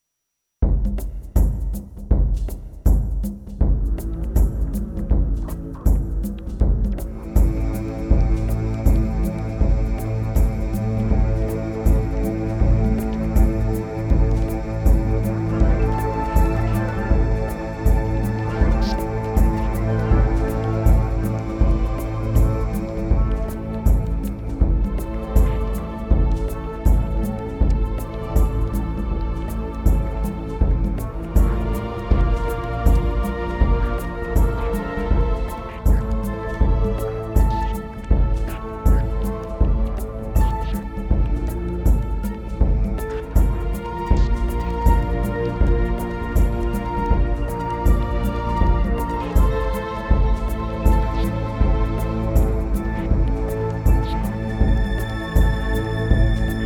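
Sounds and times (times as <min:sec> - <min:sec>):
instrumental music: 0:00.6 - 0:56.6.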